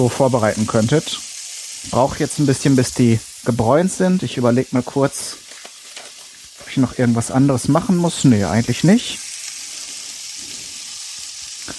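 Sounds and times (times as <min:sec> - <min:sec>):
speech: 0:00.0 - 0:05.4, 0:06.8 - 0:09.2
duck legs frying in a pan: 0:00.0 - 0:11.7.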